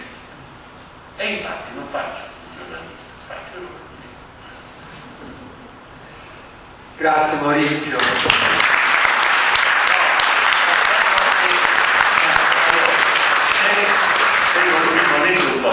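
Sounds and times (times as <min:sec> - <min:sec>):
speech: 0:01.2 - 0:03.8, 0:07.0 - 0:08.7
audience applause: 0:07.9 - 0:15.7.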